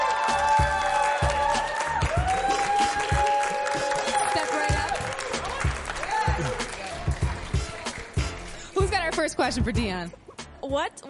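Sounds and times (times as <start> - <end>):
audience applause: 0.0 - 8.6
speech: 9.2 - 11.0.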